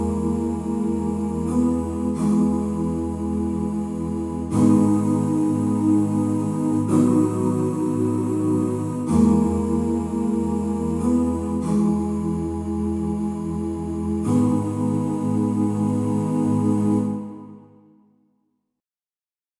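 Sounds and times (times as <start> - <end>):
choir sound on an arranger keyboard: 0.0 - 18.0.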